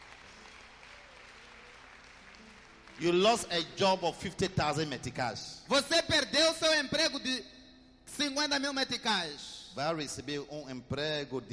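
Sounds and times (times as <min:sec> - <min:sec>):
congregation applause at a church service: 0:00.0 - 0:03.6
speech: 0:03.0 - 0:07.6, 0:08.2 - 0:11.5.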